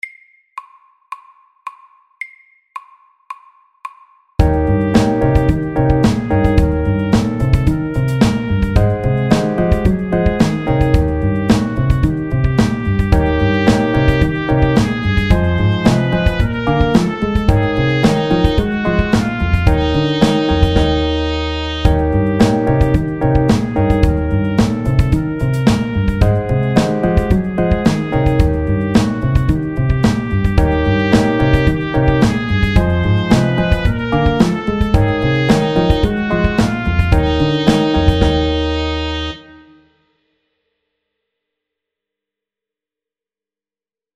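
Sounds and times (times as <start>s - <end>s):
chromatic blues music: 4.4s - 39.6s.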